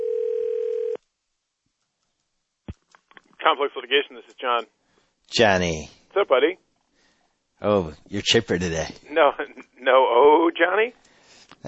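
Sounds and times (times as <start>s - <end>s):
telephone ring tone: 0.0s - 1.0s
speech: 3.4s - 6.6s, 7.6s - 11.6s.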